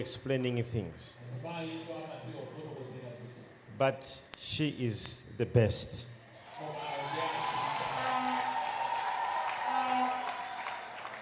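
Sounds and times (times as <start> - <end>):
speech: 0.0 - 2.5, 3.8 - 6.8
hands clapping: 7.7 - 11.2.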